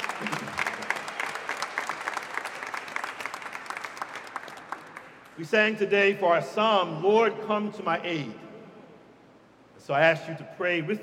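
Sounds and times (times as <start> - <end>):
audience applause: 0.0 - 5.4
speech: 5.4 - 8.4, 9.9 - 11.0.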